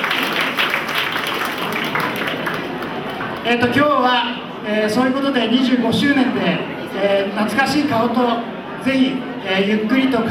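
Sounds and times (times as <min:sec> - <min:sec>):
audience applause: 0:00.0 - 0:03.5
speech: 0:03.4 - 0:10.3.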